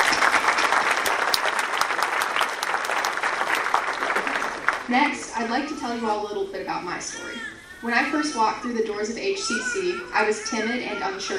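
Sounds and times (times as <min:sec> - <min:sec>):
room full of people applauding: 0:00.0 - 0:05.2
speech: 0:04.9 - 0:11.3.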